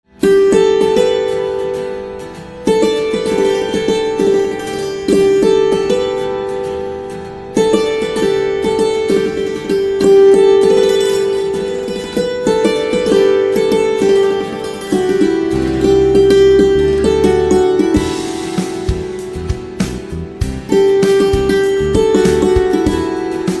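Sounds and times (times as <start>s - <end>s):
santoor instrumental ringtone: 0.1s - 23.5s.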